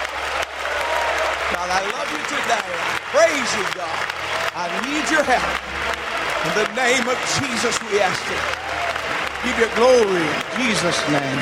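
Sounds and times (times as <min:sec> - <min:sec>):
audience clapping and shouting: 0:00.0 - 0:11.3
speech: 0:01.6 - 0:05.8, 0:06.4 - 0:11.3.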